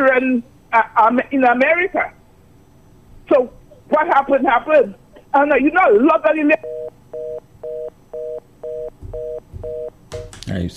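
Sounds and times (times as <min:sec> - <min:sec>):
speech: 0:00.0 - 0:02.2, 0:03.3 - 0:06.8, 0:10.5 - 0:10.7
faint hiss: 0:00.0 - 0:10.7
telephone line beeps after a call is cut off: 0:06.6 - 0:10.0.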